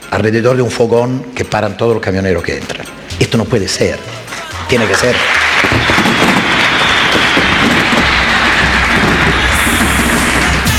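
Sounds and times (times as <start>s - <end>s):
speech: 0.1s - 5.8s
crowd applause: 4.4s - 10.7s.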